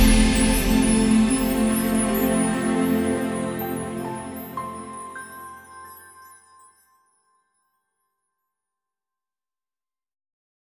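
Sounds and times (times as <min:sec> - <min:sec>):
instrumental music: 0:00.0 - 0:07.6.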